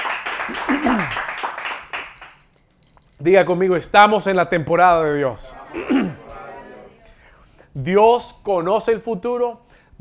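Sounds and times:
audience applause: 0.0s - 2.3s
speech: 3.2s - 6.2s, 7.8s - 10.0s.

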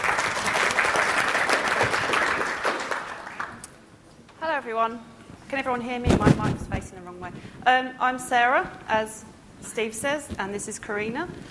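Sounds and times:
conference audience applause: 0.0s - 3.6s
speech: 4.8s - 11.5s.

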